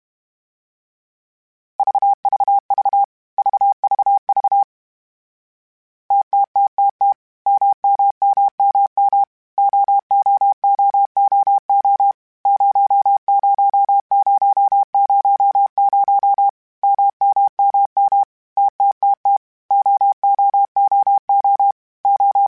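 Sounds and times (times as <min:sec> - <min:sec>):
Morse code CW code groups: 0:01.8 - 0:04.7, 0:06.1 - 0:22.4.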